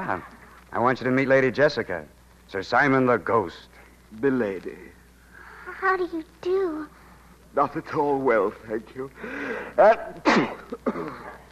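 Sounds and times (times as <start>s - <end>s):
speech: 0.1s - 5.0s, 5.8s - 7.0s, 7.6s - 11.5s
person sneezing: 9.5s - 11.5s.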